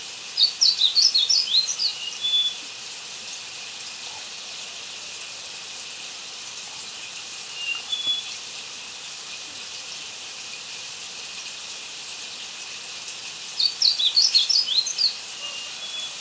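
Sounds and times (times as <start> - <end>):
blue seedeater song twittering in Ecuador: 0.4 - 2.7, 7.5 - 8.5, 13.6 - 16.1.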